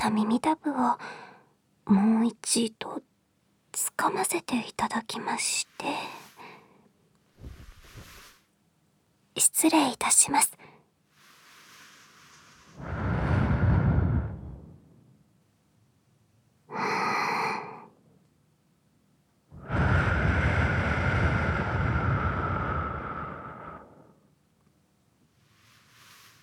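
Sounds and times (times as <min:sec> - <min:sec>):
speech: 0:00.0 - 0:01.2, 0:01.9 - 0:03.1, 0:03.7 - 0:06.2, 0:09.4 - 0:10.7
soft breathy blowing during ASMR cleaning of the left ear: 0:05.5 - 0:08.5, 0:11.0 - 0:14.8, 0:19.6 - 0:24.2, 0:25.4 - 0:26.4.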